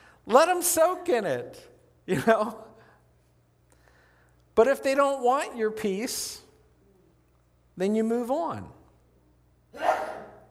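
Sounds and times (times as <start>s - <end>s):
speech: 0.2s - 2.7s, 4.6s - 6.4s, 7.8s - 8.8s, 9.7s - 10.0s
sneeze: 9.7s - 10.4s.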